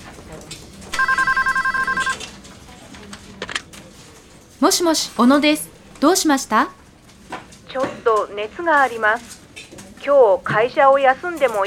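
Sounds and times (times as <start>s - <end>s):
murmur: 0.0s - 11.6s
telephone ringing with an incoming call: 0.9s - 2.2s
speech: 4.6s - 6.8s, 7.7s - 9.4s, 10.0s - 11.6s.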